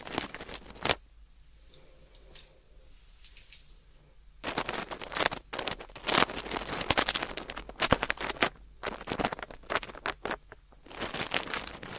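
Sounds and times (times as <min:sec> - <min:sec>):
faint low humming: 0:00.0 - 0:11.9
ear cleaning scratching, rustling and crackling: 0:04.4 - 0:11.9.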